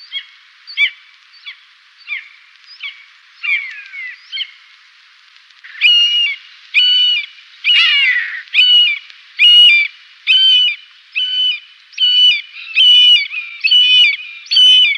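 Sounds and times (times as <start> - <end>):
common buzzard giving harsh mewing calls: 5.7 - 14.9.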